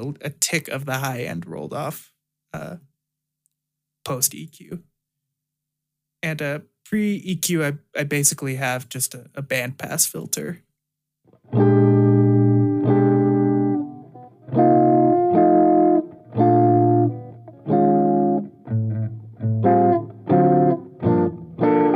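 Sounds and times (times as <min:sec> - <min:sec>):
speech: 0:00.0 - 0:02.9, 0:04.0 - 0:04.9, 0:06.2 - 0:10.7
electric guitar through an amp with slight crunch playing chords: 0:11.4 - 0:21.9.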